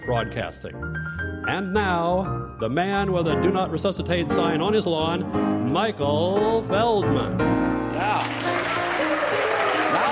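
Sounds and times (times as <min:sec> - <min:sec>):
speech: 0:00.1 - 0:08.7
studio audience applause: 0:08.0 - 0:10.0.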